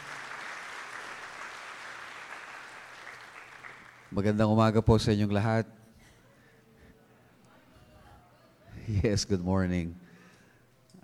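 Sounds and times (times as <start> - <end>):
applause at a worship gathering: 0.0 - 4.4
speech: 4.1 - 5.8, 9.0 - 10.0.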